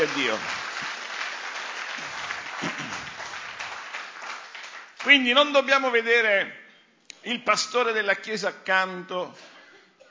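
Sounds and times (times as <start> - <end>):
speech: 0.0 - 0.6, 5.0 - 6.6, 7.2 - 9.5
audience applauding: 0.0 - 5.6.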